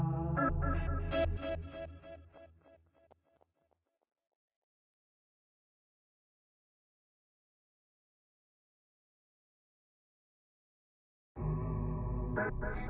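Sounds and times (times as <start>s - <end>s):
guitar effects: 0.0s - 2.2s, 11.4s - 12.8s.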